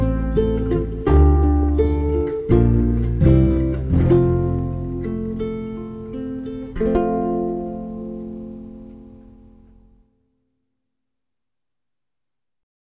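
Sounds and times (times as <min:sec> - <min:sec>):
sentimental guitar: 0:00.0 - 0:10.0.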